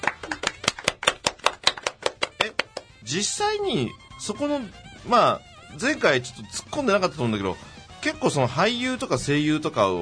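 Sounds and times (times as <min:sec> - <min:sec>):
clapping: 0:00.0 - 0:03.0
speech: 0:03.0 - 0:10.0.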